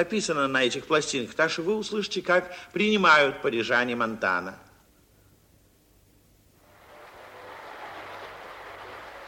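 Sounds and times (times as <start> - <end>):
speech: 0.0 - 4.7
crowd applause before a concert: 6.6 - 9.2.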